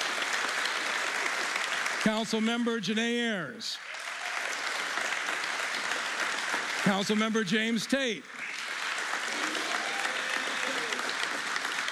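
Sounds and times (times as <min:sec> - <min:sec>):
crowd applause: 0:00.0 - 0:02.5, 0:03.8 - 0:11.9
speech: 0:02.0 - 0:04.0, 0:06.8 - 0:08.5
scattered cheers and whoops: 0:03.9 - 0:05.2, 0:09.3 - 0:11.3.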